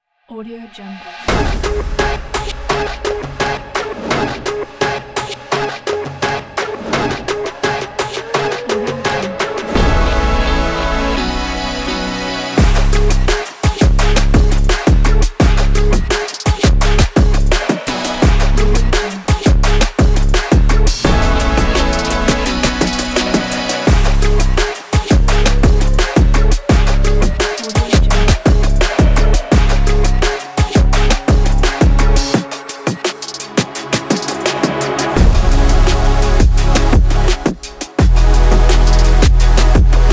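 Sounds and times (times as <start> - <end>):
epic high energy sports trap music: 0.8 - 40.1.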